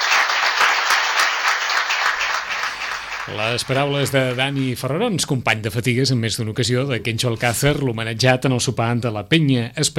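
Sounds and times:
crowd applause: 0.0 - 5.0
speech: 3.3 - 9.9.

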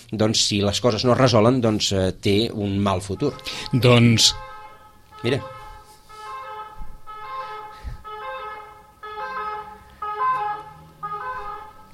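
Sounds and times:
speech: 0.1 - 4.4, 5.2 - 5.6
ambulance siren: 3.0 - 11.9.

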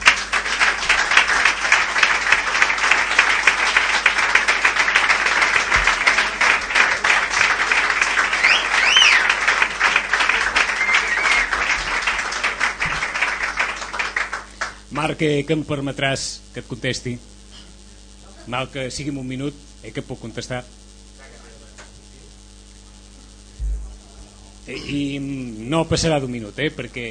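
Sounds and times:
audience applause: 0.0 - 14.9
cheers and whistles: 7.8 - 12.1
speech: 15.0 - 17.3, 18.4 - 20.8, 24.7 - 27.0.

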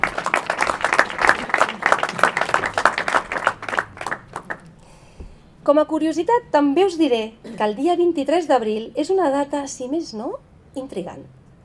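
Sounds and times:
applause: 0.0 - 4.7
speech: 5.7 - 11.4.

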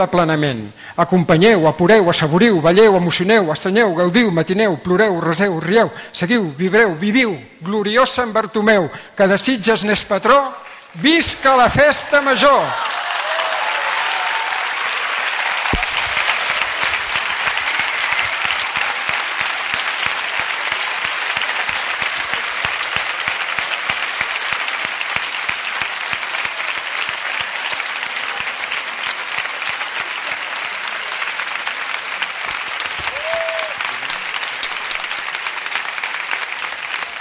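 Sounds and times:
speech: 0.0 - 13.2
large crowd applause after a speech: 12.0 - 37.2
faint cheers and whistles: 12.6 - 20.8, 32.8 - 34.2.

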